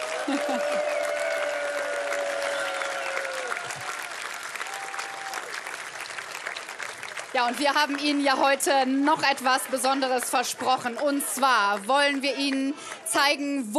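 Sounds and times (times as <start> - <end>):
laughter: 0.0 - 0.9
audience applause: 0.0 - 13.2
speech: 0.3 - 1.0, 7.4 - 13.7
whistling and cheering: 0.3 - 5.6.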